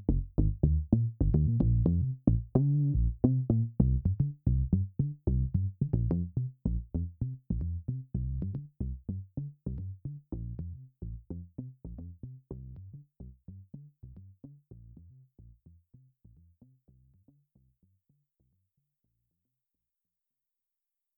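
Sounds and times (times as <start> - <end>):
round bass tone: 0.0 - 15.6.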